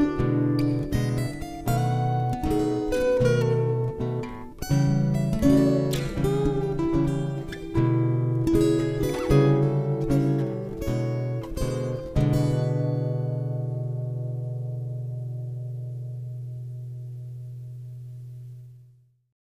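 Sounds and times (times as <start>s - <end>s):
slow blues guitar: 0.0s - 18.6s.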